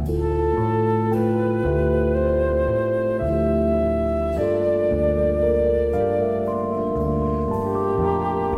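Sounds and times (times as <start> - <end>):
sad flute loop: 0.0 - 8.5.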